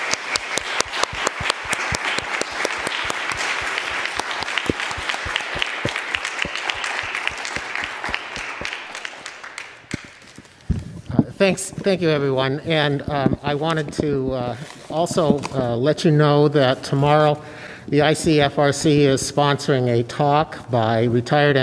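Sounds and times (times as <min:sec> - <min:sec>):
audience applause: 0:00.0 - 0:10.5
speech: 0:11.4 - 0:21.6.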